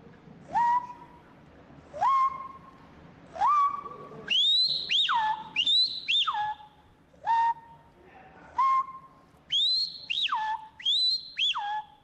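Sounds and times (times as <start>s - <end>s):
person whistling an imitation of a large Amazon bird: 0.5s - 1.1s, 2.0s - 2.6s, 3.4s - 7.8s, 8.6s - 12.0s.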